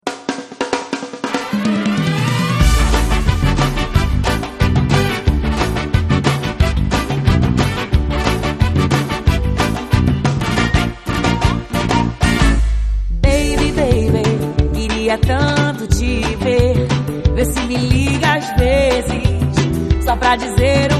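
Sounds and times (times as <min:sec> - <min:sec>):
MPB samba music: 0:00.0 - 0:20.9.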